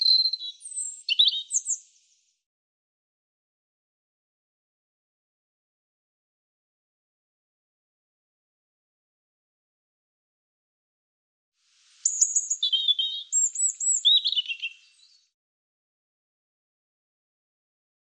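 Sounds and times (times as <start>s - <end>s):
European robin singing: 0.0s - 2.1s, 12.0s - 15.3s.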